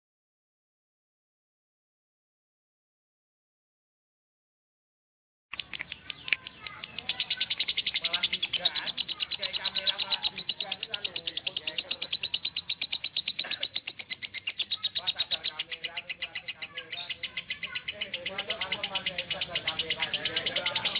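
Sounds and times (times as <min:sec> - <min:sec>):
lovebird chattering: 0:05.5 - 0:20.9.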